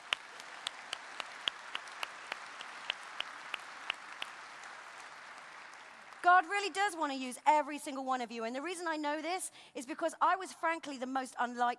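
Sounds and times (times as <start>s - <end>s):
round of applause: 0.0s - 6.7s
speech: 6.3s - 11.7s.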